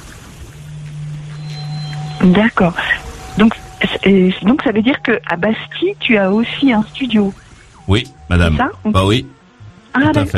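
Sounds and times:
boat on water: 0:00.0 - 0:07.9
speech: 0:02.2 - 0:09.4, 0:10.0 - 0:10.3.

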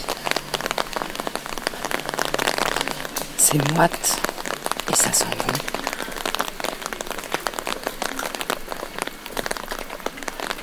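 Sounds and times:
thunderstorm rain pouring down: 0:00.0 - 0:10.6
speech: 0:03.5 - 0:04.3, 0:04.9 - 0:05.8.

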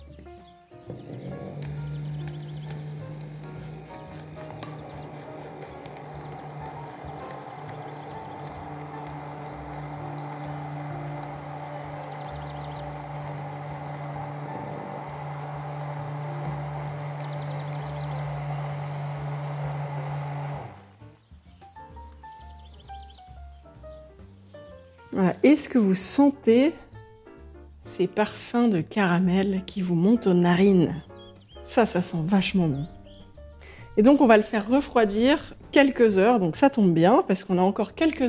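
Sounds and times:
immersion blender emulsifying in measuring jug: 0:00.8 - 0:21.0
speech: 0:25.2 - 0:26.8, 0:28.0 - 0:31.1, 0:31.7 - 0:33.0, 0:34.0 - 0:38.2.

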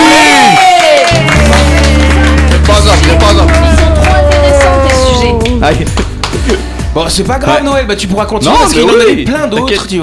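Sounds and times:
applause: 0:00.0 - 0:06.5
speech: 0:07.1 - 0:10.0.

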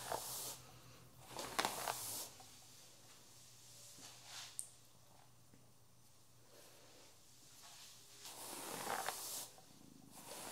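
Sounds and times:
hair brushing hiss during haircut: 0:00.0 - 0:00.7, 0:01.3 - 0:02.5, 0:07.6 - 0:10.5.

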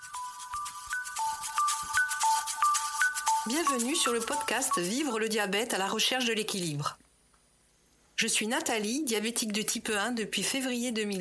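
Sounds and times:
podcast intro electronic theme jingle: 0:00.0 - 0:04.9
speech: 0:03.4 - 0:07.0, 0:08.2 - 0:11.2.

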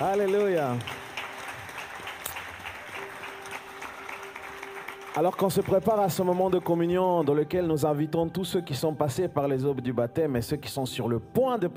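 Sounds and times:
speech: 0:00.0 - 0:01.1, 0:05.2 - 0:11.7
audience applause: 0:00.0 - 0:07.5.

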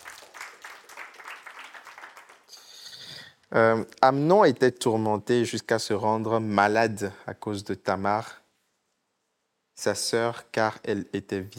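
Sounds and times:
audience applause: 0:00.0 - 0:02.7
speech: 0:03.5 - 0:08.4, 0:09.8 - 0:11.5.

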